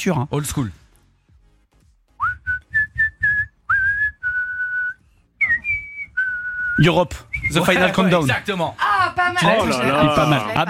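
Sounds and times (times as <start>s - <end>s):
speech: 0.0s - 0.8s, 6.8s - 10.6s
person whistling a song melody: 2.2s - 7.7s.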